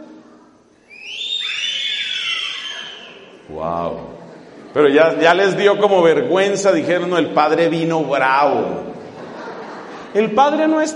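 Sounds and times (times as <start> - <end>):
audience whistling in tribute: 0.8 - 3.4
laughter: 3.2 - 6.1, 8.4 - 10.9
speech: 3.5 - 8.9, 10.1 - 10.9.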